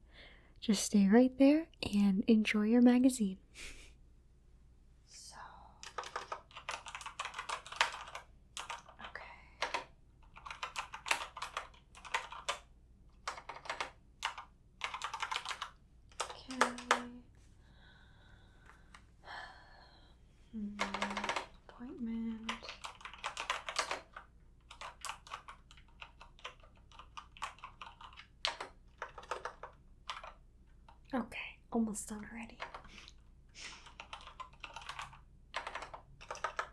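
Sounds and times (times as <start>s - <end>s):
soft breathing: 0.0s - 0.6s, 17.3s - 20.8s
speech: 0.6s - 3.8s
computer keyboard typing: 5.8s - 17.2s, 20.8s - 21.8s, 22.4s - 31.1s, 32.5s - 33.2s, 33.8s - 36.7s.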